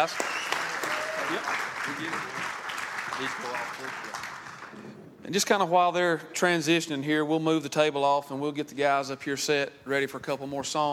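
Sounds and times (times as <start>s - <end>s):
speech: 0.0s - 0.3s, 1.3s - 10.9s
audience applause: 0.0s - 4.9s.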